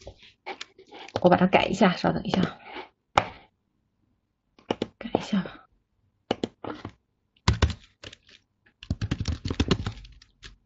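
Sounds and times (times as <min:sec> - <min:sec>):
speech: 0:01.3 - 0:02.7
typing on a computer keyboard: 0:07.5 - 0:10.6.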